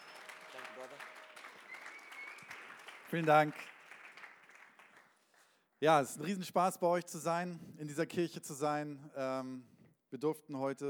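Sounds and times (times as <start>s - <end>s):
church audience applause: 0.0s - 5.2s
speech: 0.8s - 1.2s, 3.1s - 3.7s, 5.8s - 10.8s.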